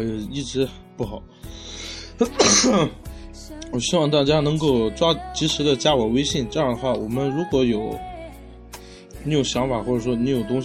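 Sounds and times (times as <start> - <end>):
speech: 0.0 - 8.1, 9.2 - 10.6
person coughing: 2.2 - 3.0.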